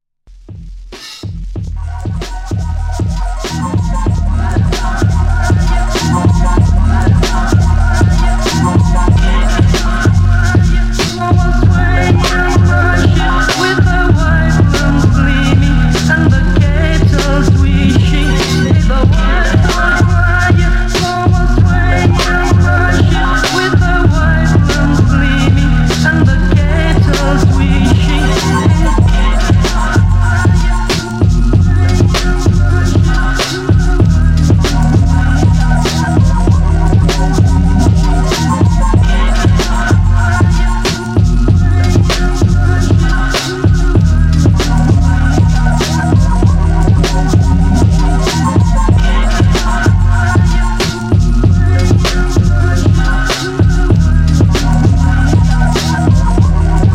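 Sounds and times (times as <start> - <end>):
instrumental music: 0.3 - 56.9.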